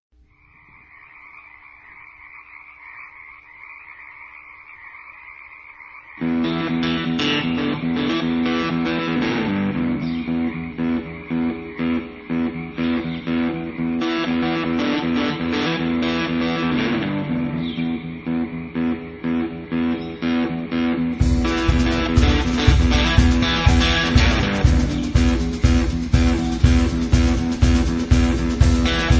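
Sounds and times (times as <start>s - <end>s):
instrumental music: 6.2s - 29.1s.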